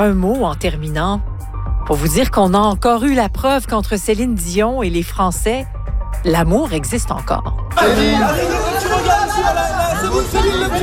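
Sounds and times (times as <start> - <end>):
speech: 0.0 - 8.6
crowd of fans chattering and calling out excitedly: 7.7 - 10.8.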